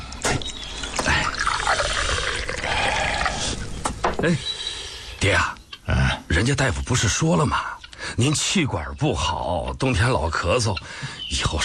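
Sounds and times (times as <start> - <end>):
liquor being poured into a small cup: 0.8 - 3.7
speech: 4.2 - 4.6, 5.2 - 11.6.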